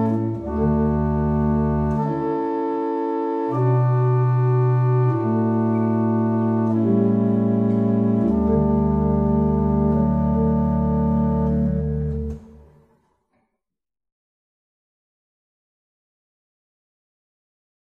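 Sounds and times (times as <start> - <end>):
barrel organs: 0.0 - 12.6.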